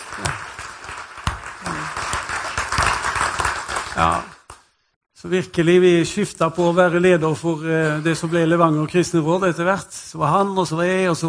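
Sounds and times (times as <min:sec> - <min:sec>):
audience clapping: 0:00.0 - 0:04.7
speech: 0:00.2 - 0:00.5, 0:05.2 - 0:11.2.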